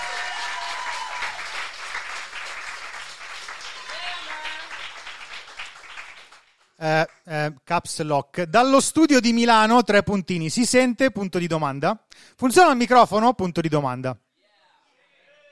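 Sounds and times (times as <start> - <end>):
applause sound effect: 0.0 - 7.3
speech: 6.8 - 14.2.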